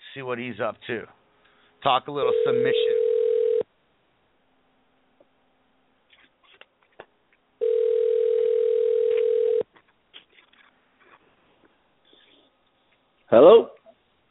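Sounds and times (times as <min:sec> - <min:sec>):
speech: 0:00.2 - 0:01.2, 0:01.8 - 0:03.0, 0:13.3 - 0:13.7
telephone dial tone while calling: 0:02.3 - 0:03.6, 0:07.6 - 0:09.6.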